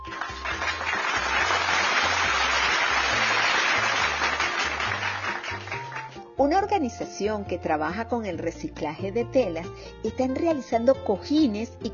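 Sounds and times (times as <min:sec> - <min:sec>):
crowd applauding: 0:00.0 - 0:06.3
speech: 0:06.4 - 0:11.9.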